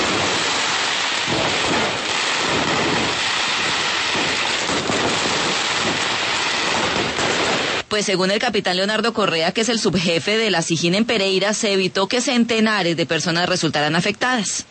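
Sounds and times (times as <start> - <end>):
explosion of seized gunpowder fireworks: 0.0 - 7.9
speech: 8.0 - 14.6.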